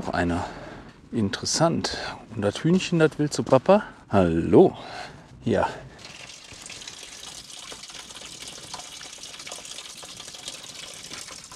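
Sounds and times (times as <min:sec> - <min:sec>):
speech: 0:00.1 - 0:05.9
meltwater running down from mountain: 0:06.0 - 0:11.5.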